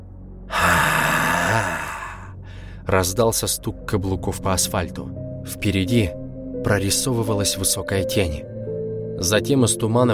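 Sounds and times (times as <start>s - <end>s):
wild heavy breathing: 0.5s - 2.9s
speech: 2.9s - 8.5s, 9.2s - 10.1s.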